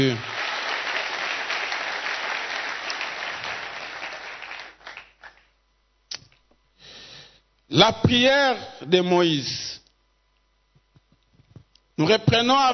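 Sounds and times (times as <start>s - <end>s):
church congregation applauding the word of the Lord: 0.0s - 5.5s
speech: 7.7s - 9.7s, 12.0s - 12.7s.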